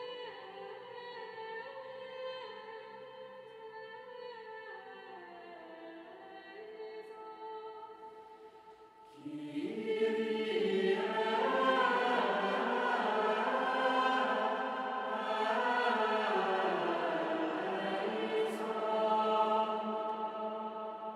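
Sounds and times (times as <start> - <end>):
chant sung with reverb: 7.1 - 21.1.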